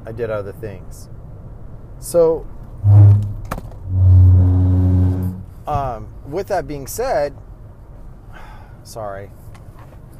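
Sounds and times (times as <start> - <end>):
speech: 0.0 - 1.2, 2.0 - 3.3, 5.7 - 7.5, 8.8 - 9.4
car engine droning while driving on the road: 2.8 - 5.6.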